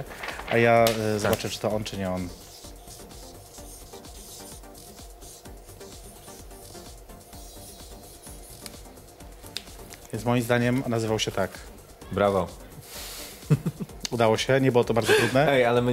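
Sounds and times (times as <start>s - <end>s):
speech: 0.0s - 2.4s, 10.2s - 12.6s, 13.5s - 15.9s
pen writing on a paper card: 2.3s - 8.9s
laughter: 13.5s - 13.9s.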